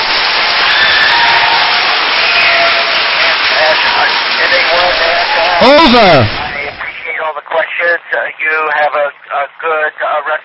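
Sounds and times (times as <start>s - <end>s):
audience applause and cheering from Calolzio Corte, Italy: 0.0s - 6.9s
speech: 4.4s - 6.4s, 7.6s - 10.4s.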